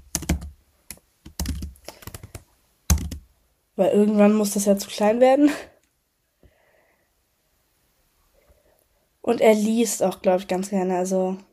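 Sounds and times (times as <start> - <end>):
computer keyboard typing while writing a note: 0.0 - 3.2
speech: 3.8 - 5.7, 9.3 - 11.5.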